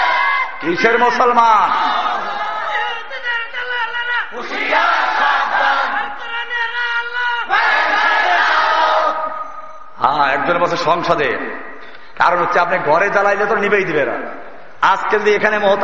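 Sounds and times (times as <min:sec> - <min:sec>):
large crowd at a Bangladeshi Islamic sermon gathering shouting in unison: 0:00.0 - 0:00.6, 0:01.6 - 0:03.2, 0:04.3 - 0:09.4
speech: 0:00.6 - 0:02.1, 0:04.3 - 0:05.4, 0:10.2 - 0:15.8.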